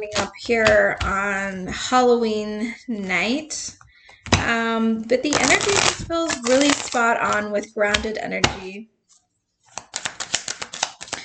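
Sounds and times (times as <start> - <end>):
speech: 0.0 - 8.9
tarot cards being shuffled: 5.3 - 8.6, 9.7 - 11.2.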